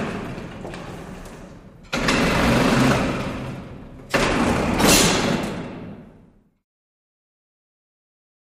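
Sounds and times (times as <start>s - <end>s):
freight elevator door: 0.0s - 6.2s.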